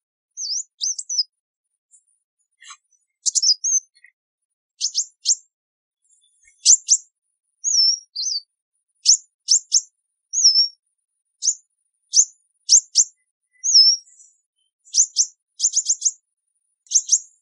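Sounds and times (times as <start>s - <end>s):
sunbird calls: 0.4s - 1.3s, 2.6s - 4.2s, 6.1s - 7.0s, 7.6s - 10.8s, 11.4s - 16.2s, 16.9s - 17.4s.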